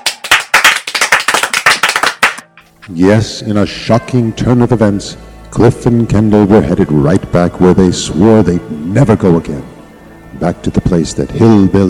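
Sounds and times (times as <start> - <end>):
studio audience applause cued by an applause sign: 0.0 - 2.5
speech: 2.9 - 9.7, 10.4 - 11.8.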